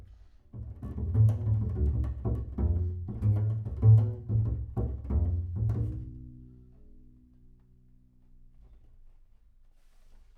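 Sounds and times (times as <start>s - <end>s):
bass sound: 0.9s - 6.5s.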